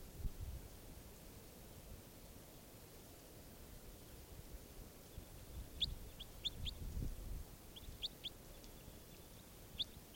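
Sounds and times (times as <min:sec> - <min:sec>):
steady hiss: 0:00.0 - 0:10.1
bird calling: 0:05.0 - 0:06.9, 0:07.6 - 0:10.1.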